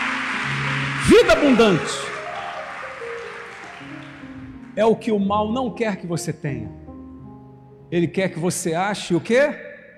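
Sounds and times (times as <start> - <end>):
audience applauding: 0.0 - 4.8
speech: 1.0 - 2.0, 4.8 - 6.8, 7.9 - 9.7.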